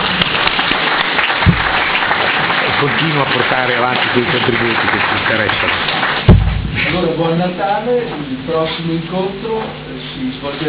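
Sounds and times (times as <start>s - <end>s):
audience applause thanking a speaker at the close of a talk: 0.0s - 6.4s
speech: 2.8s - 6.2s, 6.9s - 10.6s.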